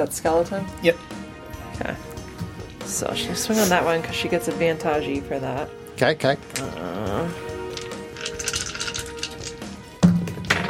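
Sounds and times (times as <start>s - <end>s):
speech: 0.0s - 1.2s, 1.8s - 2.1s, 2.9s - 7.4s
dice rolling and clattering away: 7.7s - 9.8s.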